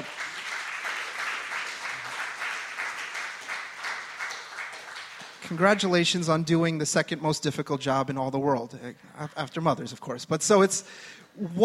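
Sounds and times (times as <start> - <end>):
round of applause: 0.0 - 6.0
speech: 5.5 - 11.6.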